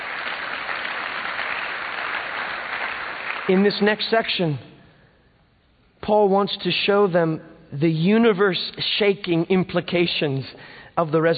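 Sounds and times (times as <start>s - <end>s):
audience clapping: 0.0s - 4.1s
speech: 3.5s - 4.7s, 6.1s - 11.3s.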